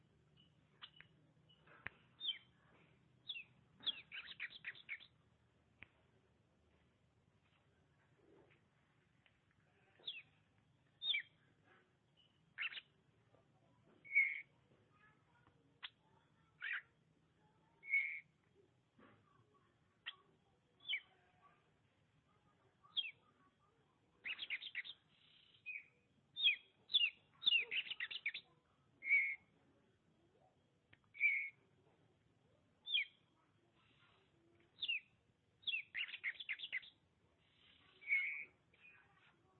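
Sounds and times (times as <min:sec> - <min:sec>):
Oriental magpie-robin song: 0:00.0 - 0:02.6, 0:03.2 - 0:05.2, 0:09.9 - 0:10.4, 0:11.0 - 0:11.4, 0:12.1 - 0:13.0, 0:14.0 - 0:14.6, 0:15.8 - 0:17.0, 0:17.7 - 0:18.4, 0:20.0 - 0:21.5, 0:22.8 - 0:23.4, 0:24.2 - 0:29.5, 0:31.0 - 0:31.6, 0:32.8 - 0:39.5.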